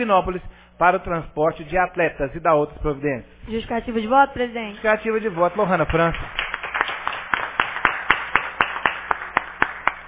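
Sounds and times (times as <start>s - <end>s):
speech: 0.0s - 6.4s
applause in council chamber: 5.3s - 10.0s.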